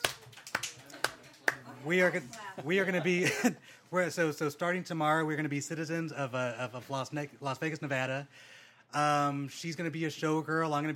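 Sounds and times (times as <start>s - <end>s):
slow clap: 0.0s - 2.4s
speech: 1.8s - 10.9s.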